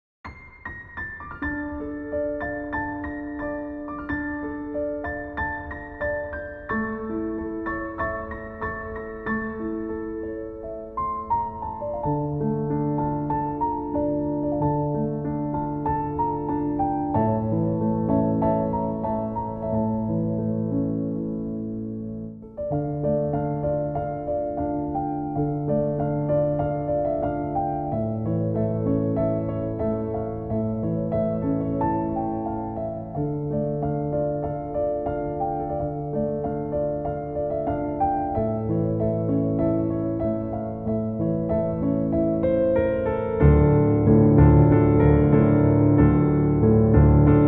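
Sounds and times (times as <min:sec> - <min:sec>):
piano music: 0:00.2 - 0:47.4.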